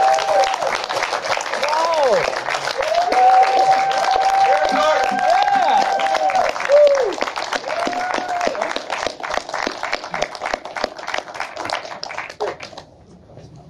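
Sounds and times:
cheers and shouting voices: 0.0s - 0.9s, 1.5s - 8.9s
crowd applauding: 0.0s - 12.9s.

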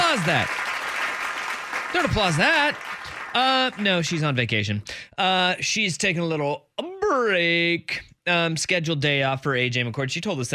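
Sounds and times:
audience applause: 0.0s - 4.2s
speech: 0.2s - 0.6s, 1.9s - 10.5s.

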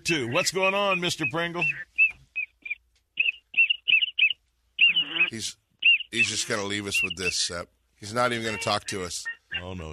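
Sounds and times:
speech: 0.1s - 1.9s, 5.3s - 9.9s
duck call whistle: 0.3s - 7.4s.

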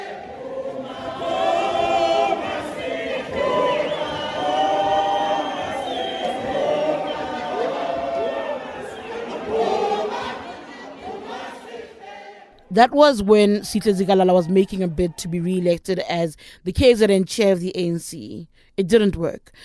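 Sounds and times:
large crowd chanting a political slogan: 0.0s - 12.8s
speech: 12.8s - 19.6s.

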